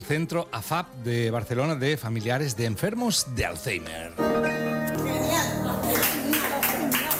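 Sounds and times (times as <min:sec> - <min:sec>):
speech: 0:00.1 - 0:04.6
audience applause: 0:05.8 - 0:07.1.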